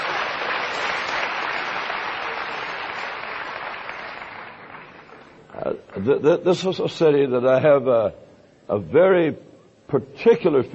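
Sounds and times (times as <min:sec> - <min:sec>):
audience applauding singers and musicians: 0:00.0 - 0:05.4
speech: 0:06.0 - 0:10.7.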